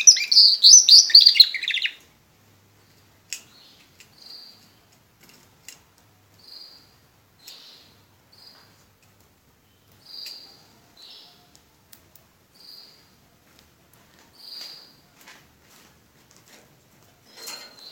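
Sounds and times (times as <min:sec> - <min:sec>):
Border canary singing: 0:00.0 - 0:02.0.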